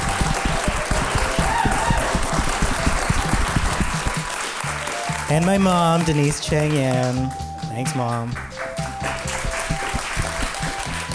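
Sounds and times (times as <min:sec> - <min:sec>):
crowd applauding: 0:00.0 - 0:11.1
speech: 0:05.3 - 0:08.6.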